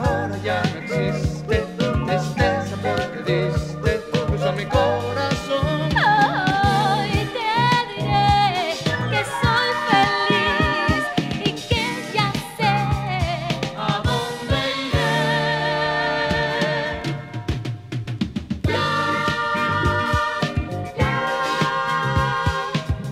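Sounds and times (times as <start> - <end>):
Cuban jazz-funk disco and Brazilian soul music: 0.0 - 23.0.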